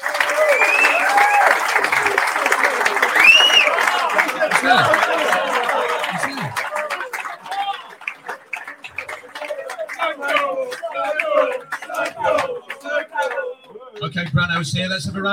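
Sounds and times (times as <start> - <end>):
crowd applause: 0.0 - 14.1
laughter: 1.7 - 12.5
speech: 14.6 - 15.3.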